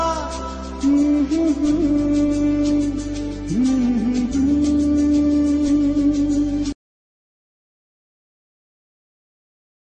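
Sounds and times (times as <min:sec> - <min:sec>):
instrumental music: 0:00.0 - 0:06.8.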